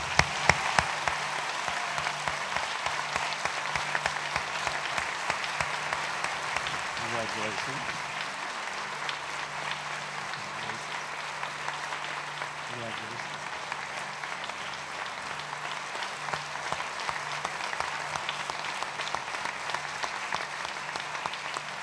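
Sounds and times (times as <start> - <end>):
audience round of applause: 0.0 - 21.8
speech: 7.4 - 8.0.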